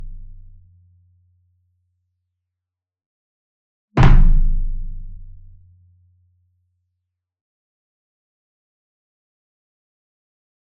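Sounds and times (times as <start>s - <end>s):
marching bass drum flam with soft beater: 4.0s - 5.6s.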